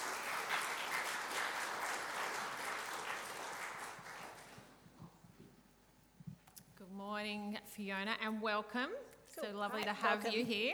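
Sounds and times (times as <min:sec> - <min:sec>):
audience applauding to welcome a guest onto a stage: 0:00.0 - 0:04.8
speech: 0:07.2 - 0:10.7.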